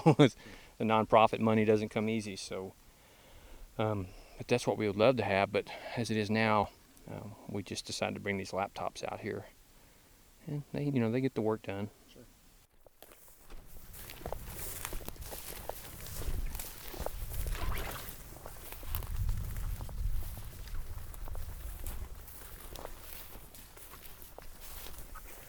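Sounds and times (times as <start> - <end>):
speech: 0.0 - 2.8, 3.8 - 9.6, 10.4 - 12.0
footsteps crunching outdoors: 12.6 - 25.4.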